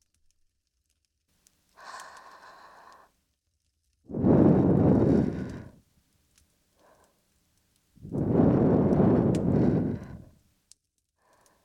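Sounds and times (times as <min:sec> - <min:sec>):
light airy breath intake: 0:01.8 - 0:03.2, 0:04.1 - 0:05.8, 0:06.8 - 0:07.2, 0:08.0 - 0:10.4, 0:11.2 - 0:11.6
soft breath blown out as a finish: 0:04.1 - 0:05.8, 0:08.0 - 0:10.4.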